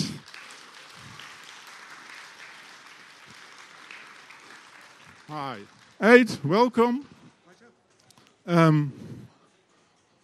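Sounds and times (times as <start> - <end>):
audience applause: 0.0 - 6.8
speech: 5.3 - 7.1, 8.5 - 9.0.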